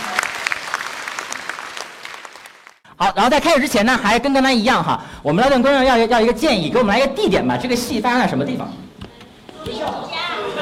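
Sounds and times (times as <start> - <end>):
audience applause: 0.0 - 2.8
speech: 3.0 - 8.8.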